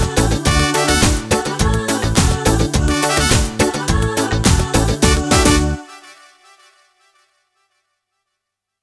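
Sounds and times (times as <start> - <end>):
disco music: 0.0 - 6.8.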